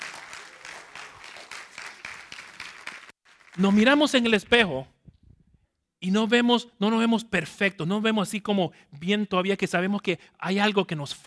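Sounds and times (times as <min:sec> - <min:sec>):
church congregation clapping during a service: 0:00.0 - 0:04.4
speech: 0:03.6 - 0:05.0, 0:06.0 - 0:11.2.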